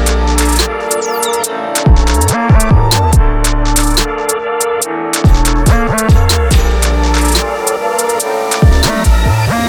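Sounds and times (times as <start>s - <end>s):
drum kit: 0.0s - 9.5s.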